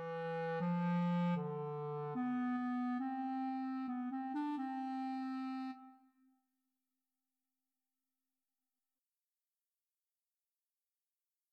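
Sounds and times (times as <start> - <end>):
solo clarinet: 0.0 - 6.3.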